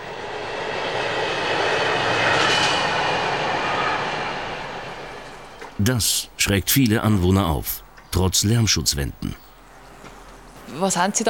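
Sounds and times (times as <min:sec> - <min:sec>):
freight train thundering past: 0:00.0 - 0:06.6
speech: 0:05.8 - 0:09.5, 0:10.7 - 0:11.2.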